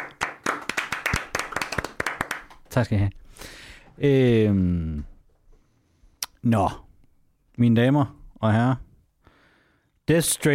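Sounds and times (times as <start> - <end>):
scattered applause from a small live-show audience: 0.0 - 2.6
speech: 2.8 - 5.1, 6.4 - 6.8, 7.6 - 8.8, 10.1 - 10.5.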